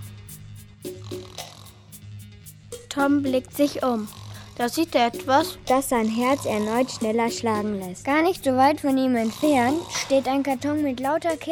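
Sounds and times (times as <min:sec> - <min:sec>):
man snoring: 0:00.9 - 0:01.9, 0:03.8 - 0:07.4, 0:09.1 - 0:10.4
speech: 0:02.9 - 0:11.5.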